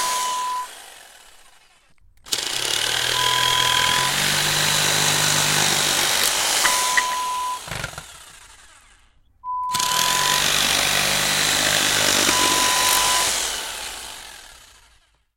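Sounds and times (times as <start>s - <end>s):
electric power tool saw: 0.0s - 15.2s.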